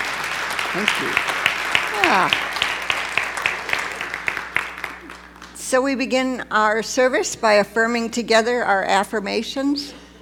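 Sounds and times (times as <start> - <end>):
congregation clapping at a church service: 0.0 - 5.6
speech: 0.7 - 1.4, 2.0 - 2.6, 5.7 - 10.0.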